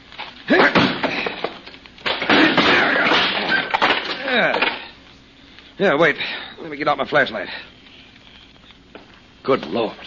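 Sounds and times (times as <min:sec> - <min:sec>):
locked wooden door being broken open, wood cracking and splintering: 0:00.5 - 0:04.8
speech: 0:05.8 - 0:07.7, 0:09.4 - 0:10.0.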